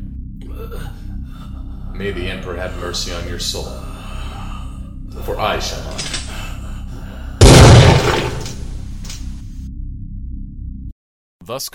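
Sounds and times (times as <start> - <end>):
speech: 0.6 - 4.0, 5.2 - 6.2, 11.5 - 11.7
low hum: 6.2 - 9.4
bolt round fired into a prisoner's head in a Warhammer 40,000 drama: 7.4 - 9.0.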